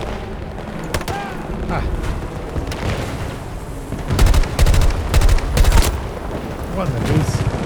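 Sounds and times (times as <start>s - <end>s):
automatic gunfire in a shooter video game: 0.6s - 1.8s, 4.1s - 6.5s
speech: 1.7s - 2.1s, 6.8s - 7.4s.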